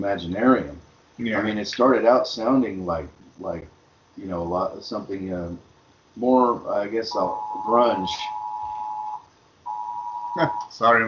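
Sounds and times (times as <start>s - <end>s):
speech: 0.0s - 8.4s, 10.4s - 11.0s
Amber alert tone on a phone: 7.2s - 10.6s.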